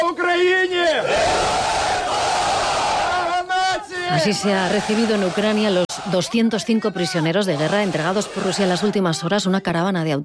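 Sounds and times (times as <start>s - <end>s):
crowd cheering returning prisoners: 0.8s - 9.5s
speech: 4.1s - 10.2s.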